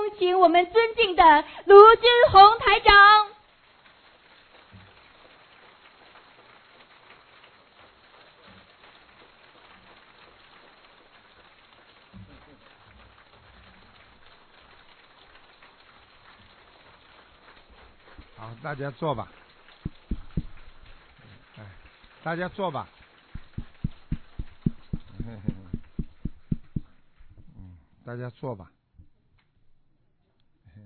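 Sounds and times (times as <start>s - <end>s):
speech: 0.2s - 3.2s, 18.5s - 19.4s, 22.2s - 23.0s, 28.1s - 28.8s
large crowd applauding: 2.9s - 27.5s.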